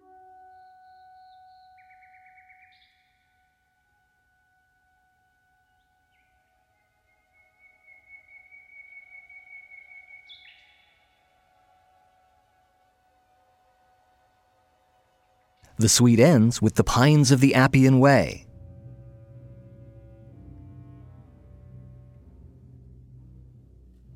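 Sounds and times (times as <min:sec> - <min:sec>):
nightingale singing: 0:00.5 - 0:03.2, 0:05.7 - 0:11.3
speech: 0:15.8 - 0:18.5.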